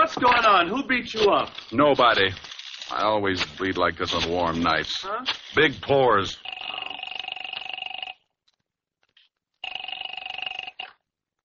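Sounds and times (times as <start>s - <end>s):
speech: 0.1s - 6.5s
telephone ringing with a buzzy double-toned trill: 6.2s - 8.3s, 9.6s - 11.1s.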